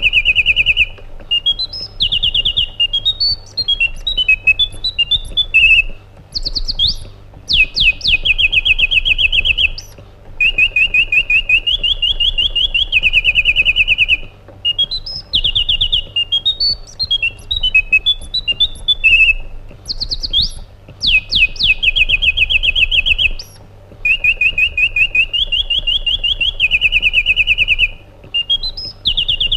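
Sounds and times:
white-eared bulbul singing: 0.0 - 29.5.

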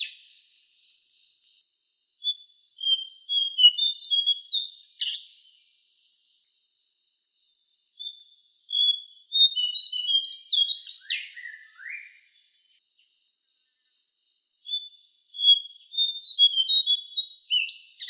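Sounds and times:
lesser shortwing singing: 2.2 - 5.3, 8.0 - 12.6, 14.7 - 18.0.

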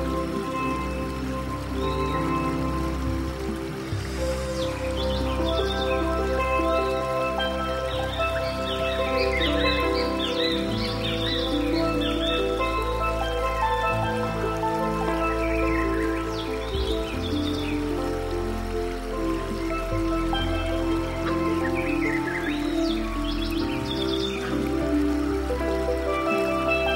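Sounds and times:
forest ambience: 0.0 - 26.9.

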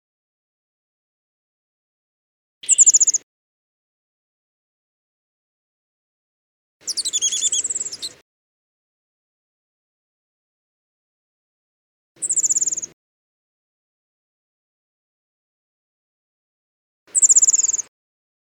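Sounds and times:
warbler alarm call: 2.6 - 3.2, 6.9 - 8.2, 12.2 - 12.9, 17.2 - 17.8.

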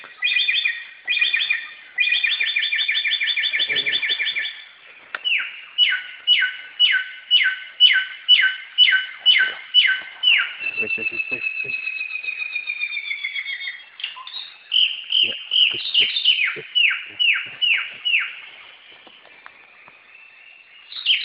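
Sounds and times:
singing: 0.0 - 21.2.

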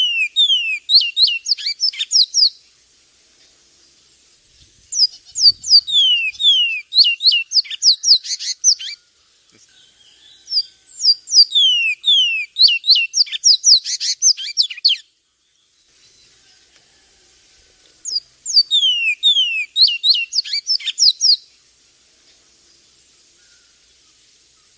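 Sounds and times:
Javan tesia piercing high chirps and falling whistles: 0.0 - 2.6, 4.9 - 9.0, 10.5 - 15.0, 18.1 - 21.4.

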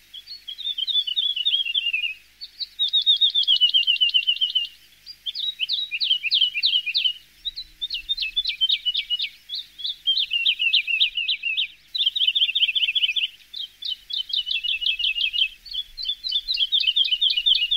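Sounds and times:
lark song: 0.0 - 17.7.

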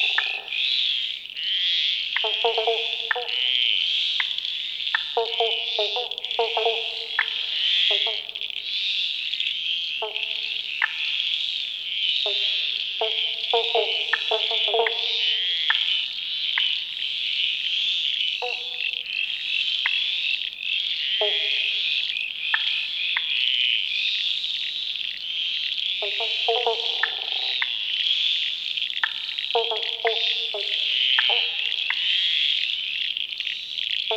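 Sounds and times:
pobblebonk frogs: 0.0 - 34.1.

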